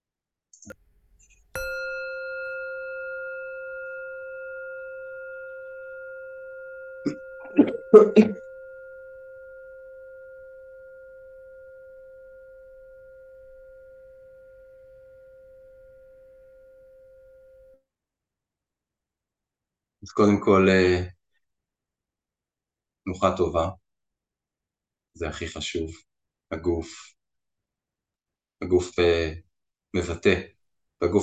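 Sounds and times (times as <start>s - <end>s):
speech: 0.6s - 0.8s, 7.0s - 8.4s, 20.2s - 21.1s, 23.1s - 23.8s, 25.2s - 27.2s, 28.6s - 31.2s
meditation bell ringing: 1.6s - 17.8s.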